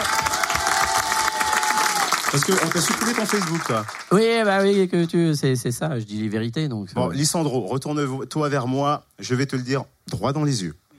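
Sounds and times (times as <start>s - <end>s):
audience applause: 0.0s - 4.2s
speech: 2.3s - 10.8s.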